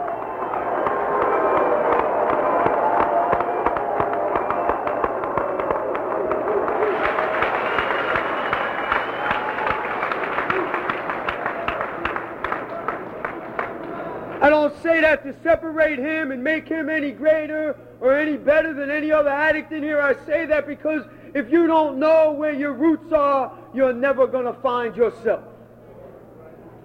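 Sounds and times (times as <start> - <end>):
audience applause: 0.0 - 14.4
speech: 15.2 - 25.5.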